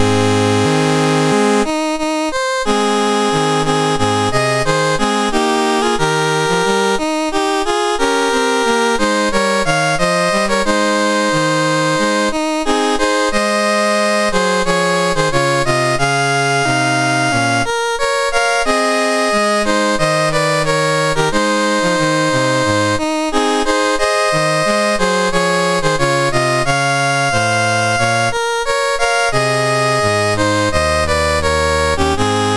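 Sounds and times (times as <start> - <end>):
MOS6581R4 SID chip national anthem music: 0.0 - 32.5.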